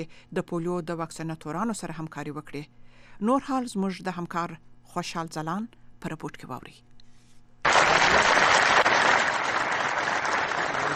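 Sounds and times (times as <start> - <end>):
speech: 0.0 - 6.9
applause from a large gathering in Farah after the acting governor's speech: 7.7 - 10.9.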